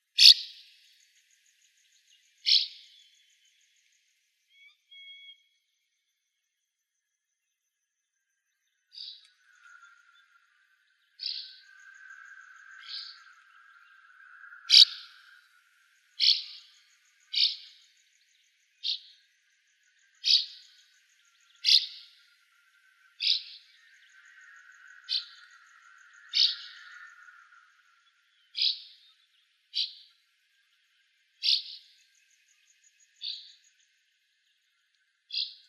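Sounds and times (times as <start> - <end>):
swallows calling: 0.0 - 0.7, 1.5 - 3.6, 8.9 - 15.4, 16.0 - 34.0, 35.3 - 35.6
larks singing: 0.0 - 3.8, 8.9 - 34.0, 34.6 - 35.6.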